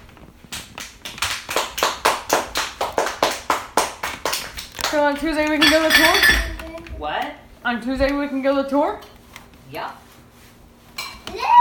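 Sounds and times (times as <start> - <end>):
child clapping hands: 0.5 - 5.0
speech: 4.9 - 9.1, 9.7 - 10.1.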